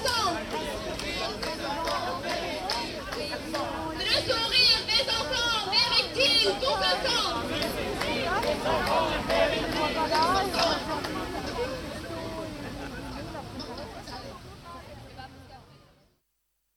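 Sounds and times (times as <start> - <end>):
protest crowd in Syria: 0.0 - 16.2.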